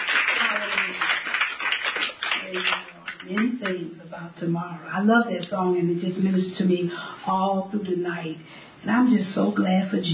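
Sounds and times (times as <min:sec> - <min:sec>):
audience clapping: 0:00.0 - 0:03.8
speech: 0:02.5 - 0:10.1.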